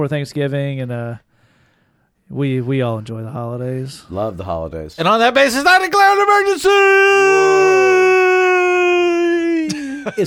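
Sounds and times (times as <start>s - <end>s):
speech: 0.0s - 1.3s, 2.3s - 7.9s, 10.0s - 10.2s
man screaming: 5.7s - 9.8s.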